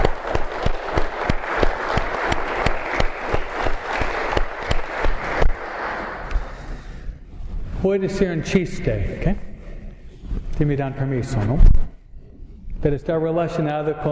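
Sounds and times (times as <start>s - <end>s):
crowd applauding: 0.0s - 7.2s
speech: 7.8s - 9.4s, 10.6s - 11.8s, 12.8s - 14.1s.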